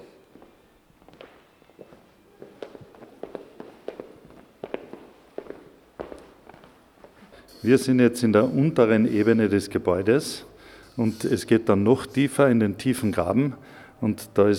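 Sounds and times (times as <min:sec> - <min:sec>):
footsteps walking into the spiral room of Domenig's Steinhaus: 0:00.0 - 0:09.5
speech: 0:07.6 - 0:14.5.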